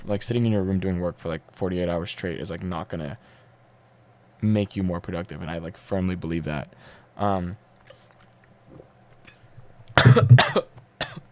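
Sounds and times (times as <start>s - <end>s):
speech: 0.1s - 3.4s, 4.4s - 7.6s, 10.0s - 10.7s
person coughing after choking on water: 10.0s - 11.2s.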